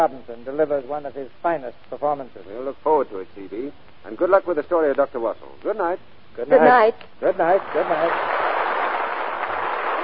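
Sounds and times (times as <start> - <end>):
speech: 0.0 - 8.4
audience applause: 7.5 - 10.0.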